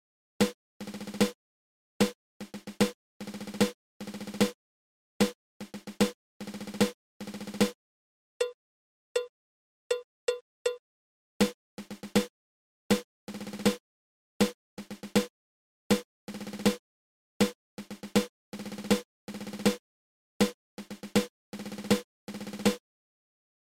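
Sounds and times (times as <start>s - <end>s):
seven stroke roll triple drum rudiment: 0.4s - 1.4s, 2.0s - 4.6s, 5.2s - 7.8s, 11.4s - 12.3s, 12.9s - 13.8s, 14.4s - 15.3s, 15.9s - 16.8s, 17.4s - 19.8s, 20.4s - 22.8s.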